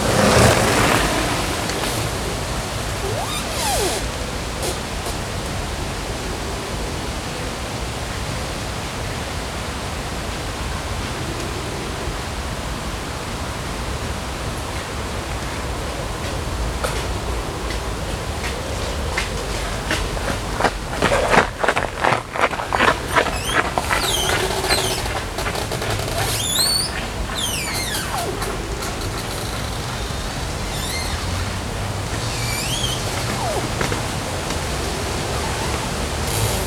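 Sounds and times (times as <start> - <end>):
moving river water in Odense: 0.0 - 8.1, 14.2 - 36.6
wind along the river in Odense: 0.0 - 36.6
thin high squeaks of branches: 1.9 - 5.2, 22.6 - 36.6.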